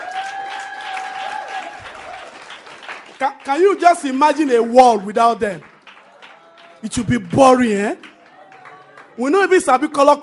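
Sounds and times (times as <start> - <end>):
audience applause: 0.0 - 9.6
speech: 3.2 - 5.7, 6.8 - 8.1, 9.2 - 10.2.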